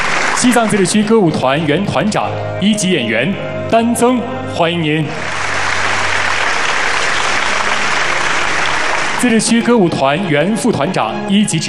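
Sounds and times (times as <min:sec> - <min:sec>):
audience applause: 0:00.0 - 0:01.1, 0:05.2 - 0:09.7
speech: 0:00.4 - 0:05.3, 0:09.2 - 0:11.6.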